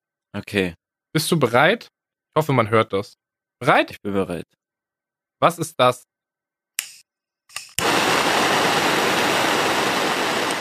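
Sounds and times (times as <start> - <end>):
speech: 0.4 - 4.6, 5.4 - 6.1
small kitchen flambé torch hissing: 7.8 - 10.5.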